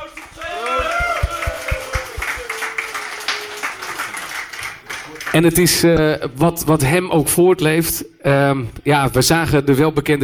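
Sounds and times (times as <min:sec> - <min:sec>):
crowd applause for a toast: 0:00.0 - 0:05.4
speech: 0:05.3 - 0:10.2.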